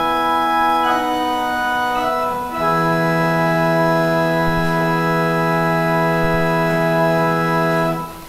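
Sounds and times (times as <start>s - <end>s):
organ interlude during the offering: 0.0s - 8.2s.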